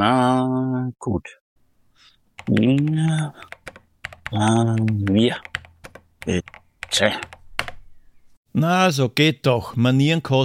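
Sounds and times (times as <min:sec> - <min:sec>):
speech: 0:00.0 - 0:01.4, 0:02.0 - 0:03.6, 0:04.3 - 0:05.6, 0:06.2 - 0:07.4, 0:08.5 - 0:10.4
typing on a computer keyboard: 0:02.4 - 0:07.8.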